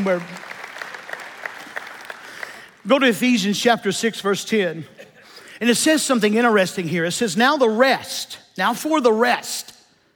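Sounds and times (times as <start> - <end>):
speech: 0.0 - 0.4, 2.8 - 9.7
audience clapping: 0.0 - 3.4.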